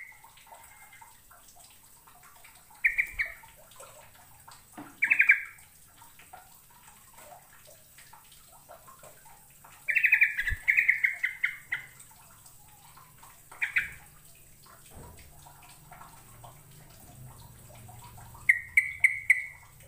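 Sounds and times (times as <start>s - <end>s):
bird trilling: 2.8s - 3.4s, 9.9s - 11.9s, 13.6s - 14.0s, 18.5s - 19.6s.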